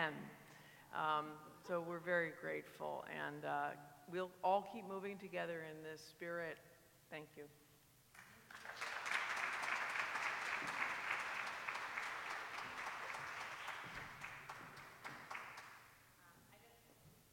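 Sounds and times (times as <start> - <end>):
speech: 0.0 - 7.6
audience applause: 8.2 - 15.9.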